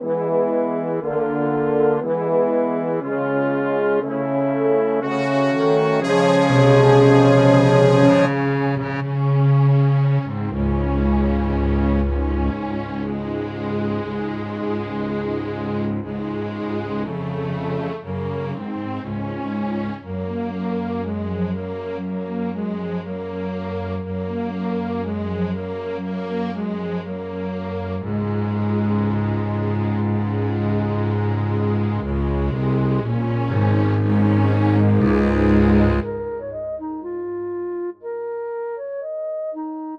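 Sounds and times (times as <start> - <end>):
orchestra: 0.0 - 38.2.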